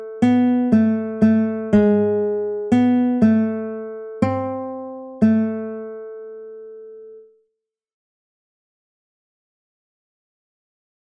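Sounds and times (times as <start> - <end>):
guitar duet: 0.0 - 7.3.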